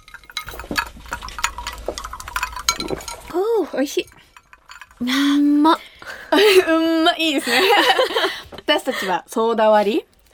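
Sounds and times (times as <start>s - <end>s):
glasses clinking in a toast: 0.0s - 5.8s
speech: 3.7s - 4.2s, 5.0s - 10.1s
laughter: 7.3s - 8.4s.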